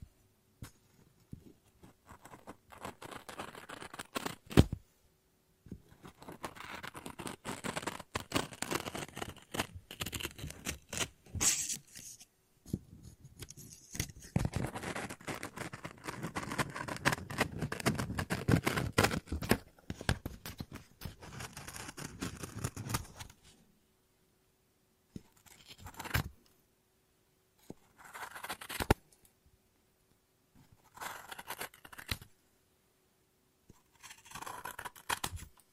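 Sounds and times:
scissors snipping and cutting paper: 2.1s - 4.7s, 6.0s - 12.2s, 13.4s - 23.3s, 28.0s - 29.0s, 30.9s - 32.2s, 33.9s - 35.6s.

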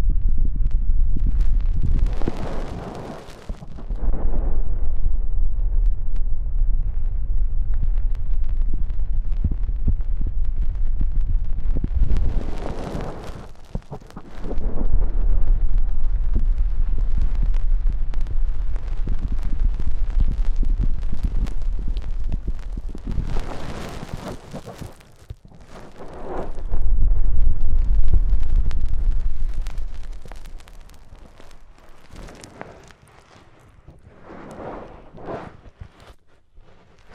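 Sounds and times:
bright crackles and hiss: 0.0s - 37.1s
deep ear cleaning rumbling and scraping: 11.4s - 37.1s.

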